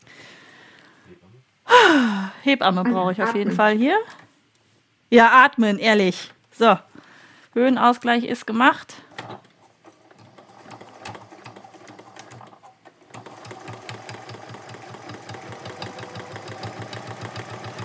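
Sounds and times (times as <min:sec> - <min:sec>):
speech: 0:02.4 - 0:04.2, 0:05.1 - 0:06.9, 0:07.6 - 0:09.0
sewing machine stitching: 0:09.1 - 0:17.8.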